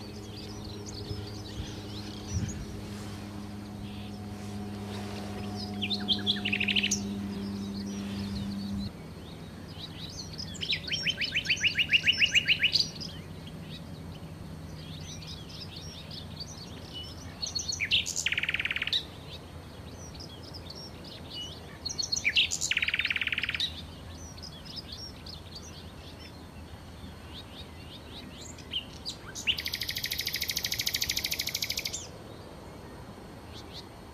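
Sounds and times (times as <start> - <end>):
low hum: 0.0 - 17.8
Common nightingale song: 0.0 - 34.0.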